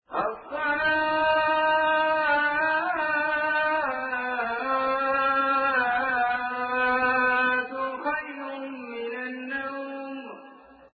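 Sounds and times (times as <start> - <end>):
Azan call to prayer: 0.1 - 10.9.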